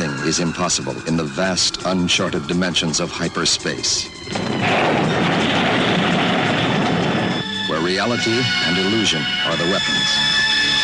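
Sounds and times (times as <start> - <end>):
speech: 0.2 - 5.5, 7.9 - 10.4
laser weapons firing at an alien spaceship in a sci-fi space battle: 4.4 - 7.6.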